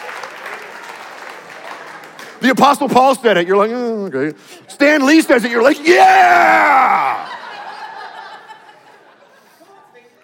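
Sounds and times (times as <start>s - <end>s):
audience clapping: 0.0s - 2.9s
speech: 2.4s - 7.3s
laughter: 6.4s - 10.1s.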